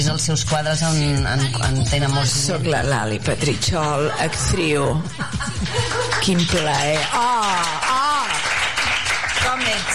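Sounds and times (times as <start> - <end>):
speech: 0.1 - 8.0, 9.4 - 9.9
laughter: 3.7 - 6.8
crowd applause: 5.6 - 9.9.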